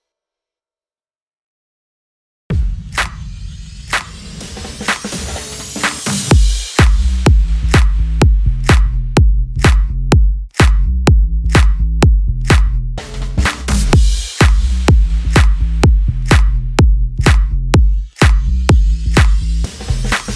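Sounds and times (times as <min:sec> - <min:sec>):
future house music bed in A minor: 0:04.8 - 0:20.3.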